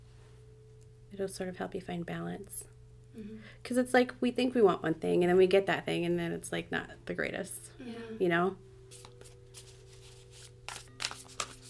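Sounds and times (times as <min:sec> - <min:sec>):
low steady hum: 0:00.0 - 0:11.6
speech: 0:01.1 - 0:09.1
playing cards being shuffled: 0:08.9 - 0:11.6.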